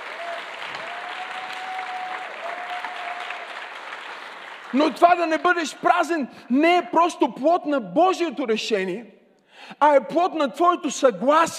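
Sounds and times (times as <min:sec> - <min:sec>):
audience applause: 0:00.0 - 0:05.5
speech: 0:04.7 - 0:11.5.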